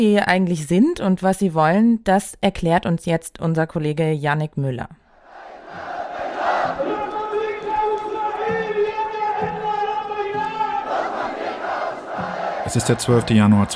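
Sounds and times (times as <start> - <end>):
speech: 0.0 - 5.0, 12.7 - 13.7
huge crowd chanting in unison: 5.2 - 13.7.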